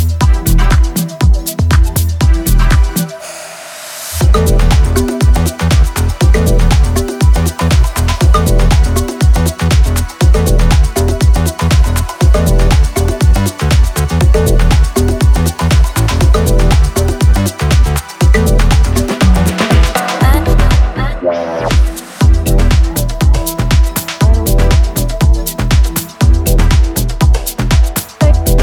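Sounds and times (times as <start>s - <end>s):
modern club dance music: 0.0s - 28.6s.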